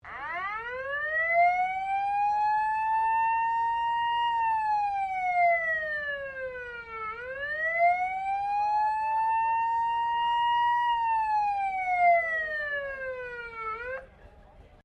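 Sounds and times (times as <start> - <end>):
old fire engine siren: 0.0 - 14.1.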